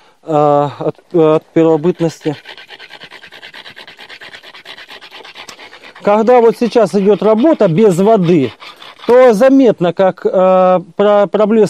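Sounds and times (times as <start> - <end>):
speech: 0.2 - 2.6, 6.0 - 11.6
stone rubbing against quartz stone: 0.9 - 9.7.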